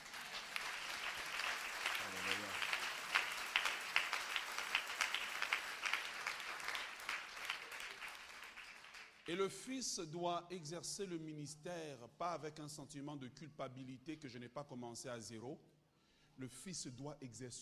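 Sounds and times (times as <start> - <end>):
audience applause: 0.0 - 9.3
voice rising through the clapping: 1.7 - 6.0
speech: 9.3 - 15.7, 16.4 - 17.5.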